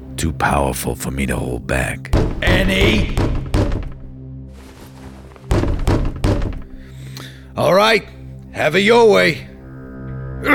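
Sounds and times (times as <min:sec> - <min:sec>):
speech: 0:00.2 - 0:03.8, 0:07.6 - 0:09.5, 0:10.4 - 0:10.5
door being broken down: 0:02.2 - 0:04.1, 0:05.5 - 0:06.9.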